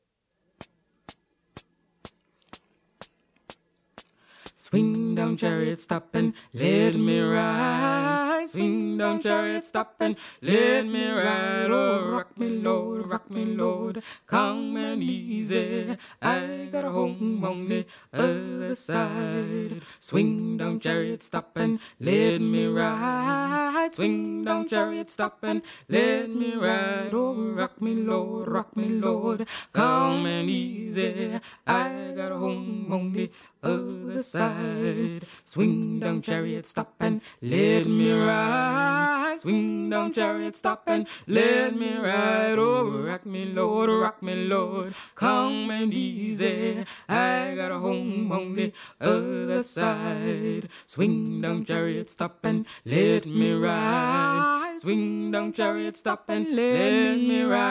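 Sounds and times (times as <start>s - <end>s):
tenor singing: 4.4s - 57.7s.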